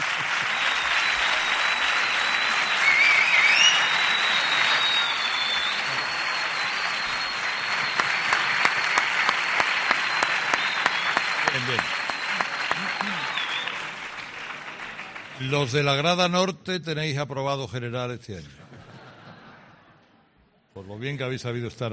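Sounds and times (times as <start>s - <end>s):
laughter: 0.0s - 1.4s, 18.5s - 20.0s
audience applause: 0.0s - 16.0s
speech: 15.5s - 18.6s, 20.9s - 21.9s.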